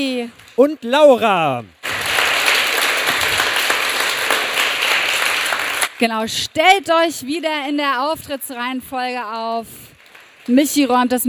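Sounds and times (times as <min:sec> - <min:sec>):
speech: 0:00.0 - 0:01.8, 0:06.0 - 0:09.8, 0:10.4 - 0:11.2
audience clapping: 0:00.0 - 0:06.1, 0:09.9 - 0:11.2.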